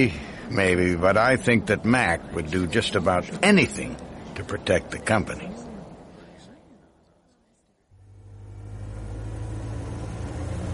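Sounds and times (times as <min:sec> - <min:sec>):
speech: 0:00.0 - 0:05.6
car engine running: 0:08.0 - 0:10.7.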